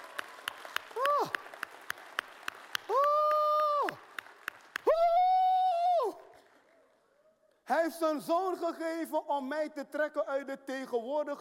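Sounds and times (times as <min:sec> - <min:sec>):
hand clapping: 0:00.0 - 0:05.2
speech: 0:07.9 - 0:11.4.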